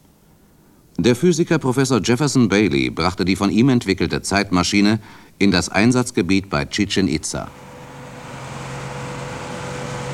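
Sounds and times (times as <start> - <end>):
speech: 1.0 - 7.7
car engine droning while speeding on a bad muddy country road in Yucatán, Mexico: 7.5 - 10.1.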